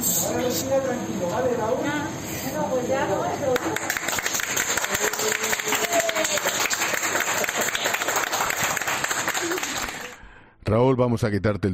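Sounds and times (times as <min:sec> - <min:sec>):
speech: 0:00.3 - 0:04.0, 0:05.2 - 0:06.6, 0:10.7 - 0:11.7
medical staff applauding: 0:03.5 - 0:10.3.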